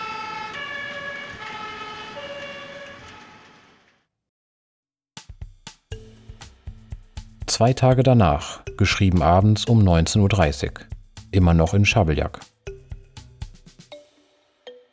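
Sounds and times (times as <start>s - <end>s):
fire engine sirens in Schabeljak: 0.0s - 4.0s
speech: 7.6s - 12.5s.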